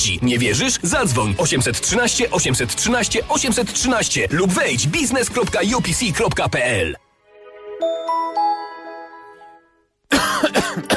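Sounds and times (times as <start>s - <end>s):
speech: 0.0s - 7.0s
coughing: 10.1s - 10.9s.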